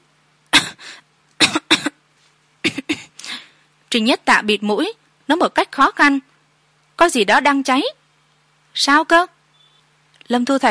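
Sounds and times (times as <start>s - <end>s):
soft cough: 1.4s - 2.0s, 2.6s - 3.2s
speech: 3.9s - 6.3s, 7.0s - 8.0s, 8.8s - 9.4s, 10.3s - 10.7s.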